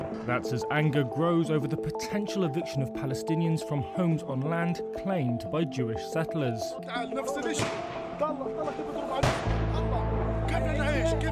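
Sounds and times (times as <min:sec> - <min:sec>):
speech: 0:00.2 - 0:09.8, 0:10.5 - 0:11.3
gunfire during clashes over the threatened eviction of Palestinians: 0:09.2 - 0:09.7.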